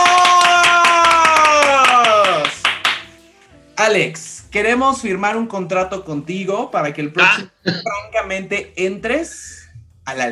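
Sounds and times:
long drawn-out vocal cheer: 0.0 - 2.8
brisk applause from a small group: 0.0 - 3.2
speech: 3.9 - 10.3.

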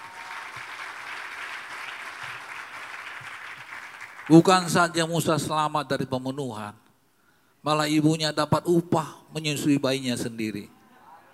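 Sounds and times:
crowd applause: 0.0 - 4.5
speech: 4.3 - 6.8, 7.6 - 10.8.

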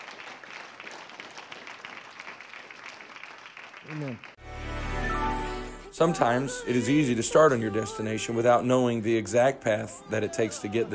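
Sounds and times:
audience clapping: 0.0 - 4.4
speech: 3.9 - 4.4, 6.0 - 10.9.

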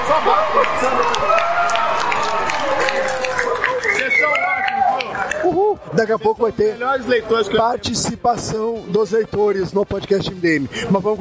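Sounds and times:
audience applause: 0.0 - 5.5
voices calling and cheering: 0.0 - 6.1
speech: 6.0 - 11.1.

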